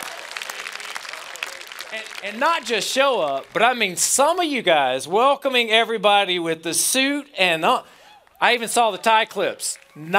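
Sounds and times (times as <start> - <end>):
audience applause outdoors: 0.0 - 3.8
speech: 1.9 - 10.1.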